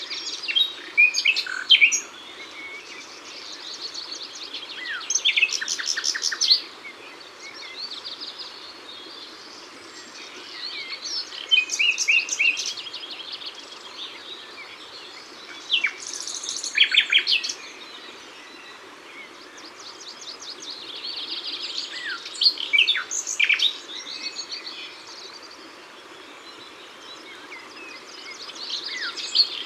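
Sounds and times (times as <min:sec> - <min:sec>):
background hiss: 0:00.0 - 0:29.6
common nightingale song: 0:00.0 - 0:29.6.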